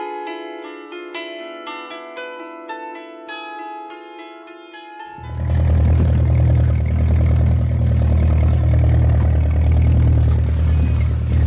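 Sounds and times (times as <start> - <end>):
bulldozer engine roaring: 5.2 - 11.4.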